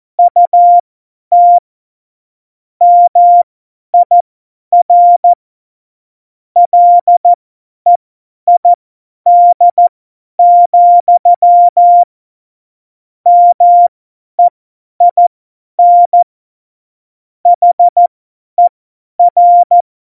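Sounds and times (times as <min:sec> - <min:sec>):
CW Morse code beeps: 0:00.2 - 0:01.6, 0:02.8 - 0:04.2, 0:04.8 - 0:05.3, 0:06.6 - 0:08.7, 0:09.3 - 0:12.1, 0:13.3 - 0:15.2, 0:15.8 - 0:16.3, 0:17.6 - 0:19.8.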